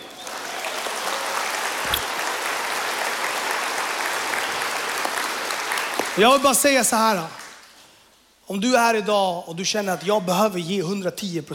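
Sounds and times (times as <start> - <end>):
audience applause: 0.0 - 6.4
speech: 6.2 - 7.4, 8.5 - 11.5.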